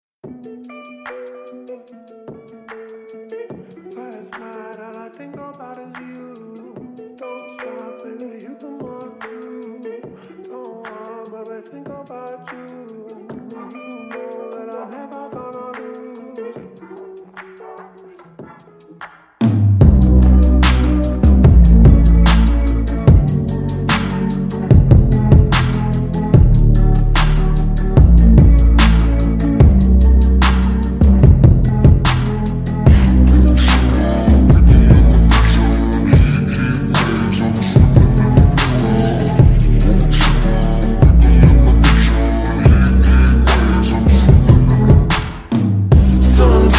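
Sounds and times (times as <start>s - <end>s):
slowed reverb music: 19.8s - 46.7s.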